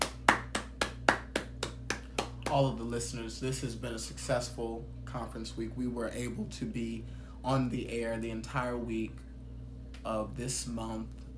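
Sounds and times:
single person clapping: 0.0 - 2.8
faint steady low hum: 0.0 - 11.3
speech: 2.5 - 9.2, 10.0 - 11.2.

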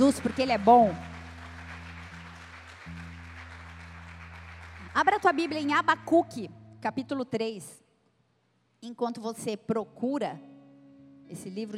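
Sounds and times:
speech: 0.0 - 1.1, 5.0 - 7.8, 8.8 - 10.5, 11.3 - 11.7
audience applauding: 0.0 - 5.8.

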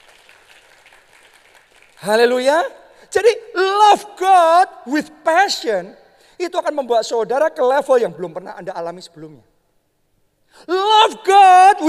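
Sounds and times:
crowd clapping: 0.0 - 2.2
speech: 2.0 - 9.5, 10.5 - 11.8.

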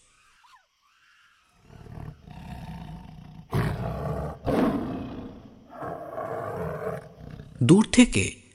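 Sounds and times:
tiger roaring in the distance at night: 1.5 - 7.7
speech: 7.6 - 8.4.

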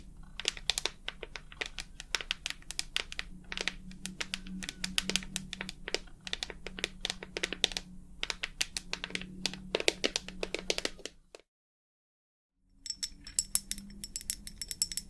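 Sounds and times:
rapid irregular tapping: 0.0 - 11.3
thin high ringing tone: 12.8 - 15.0.

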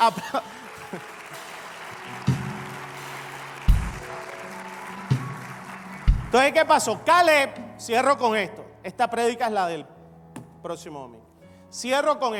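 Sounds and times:
speech: 0.0 - 1.1, 6.3 - 9.9, 10.6 - 12.3
large crowd clapping in a wide space: 0.0 - 7.1
deep heavy thumps: 3.7 - 4.0, 6.1 - 6.4.

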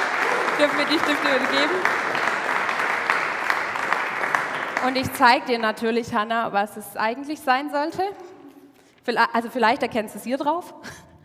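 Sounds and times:
applause: 0.0 - 5.9
speech: 0.6 - 2.2, 4.8 - 8.3, 9.0 - 11.0.

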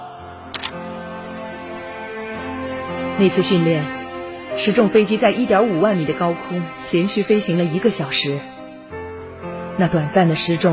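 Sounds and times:
camera shutter taking a group photo: 0.6 - 0.8
speech: 3.2 - 8.5, 9.8 - 10.7.

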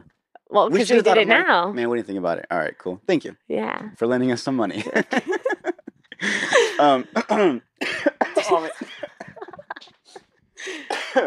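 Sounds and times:
speech: 0.5 - 5.4, 6.2 - 8.8, 10.7 - 11.2
laughter: 4.6 - 11.2
person coughing after choking on saliva: 6.4 - 9.7, 10.7 - 11.2
wheezy gasps: 10.6 - 10.9.

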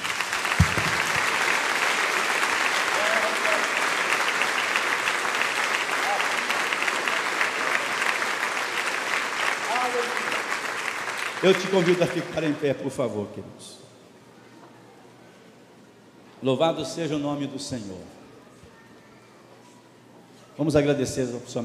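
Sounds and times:
audience applauding: 0.0 - 12.6
speech: 11.4 - 13.8, 16.4 - 18.2, 20.6 - 21.6.

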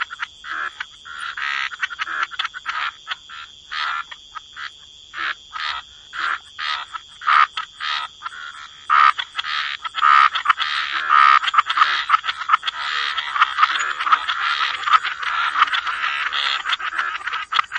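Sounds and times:
rasping frog croaks: 0.0 - 17.7.

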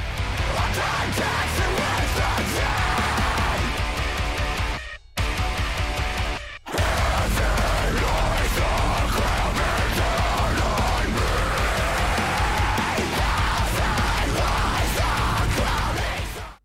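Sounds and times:
heavy distorted song with harsh screamed vocals: 0.0 - 16.6.

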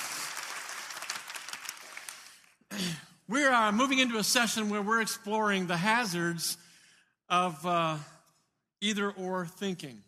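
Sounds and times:
crowd applauding: 0.0 - 2.6
speech: 2.7 - 6.6, 7.3 - 8.1, 8.8 - 10.0.

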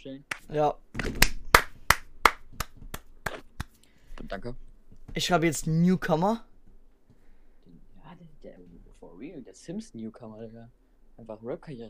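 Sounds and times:
speech: 0.0 - 1.3, 4.2 - 6.5, 8.4 - 11.8
hand clapping: 0.3 - 3.8.

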